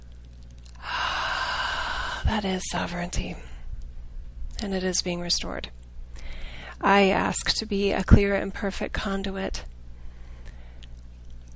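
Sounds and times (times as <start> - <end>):
slow deep breath: 0.8 - 2.3, 6.2 - 6.8, 10.0 - 10.9
speech: 2.3 - 3.5, 4.6 - 5.8, 6.8 - 9.7.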